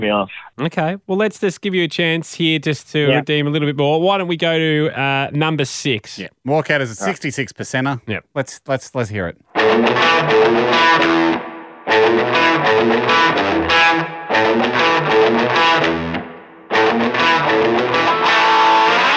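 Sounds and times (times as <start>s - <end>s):
speech: 0.0s - 11.4s, 12.1s - 13.7s
distorted Fender electric guitar tone: 9.5s - 19.1s.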